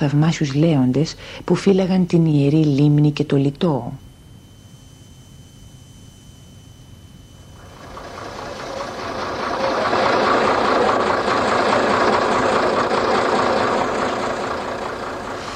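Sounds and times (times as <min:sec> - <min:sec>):
speech: 0:00.0 - 0:04.0
caique diesel engine droning: 0:07.5 - 0:15.5.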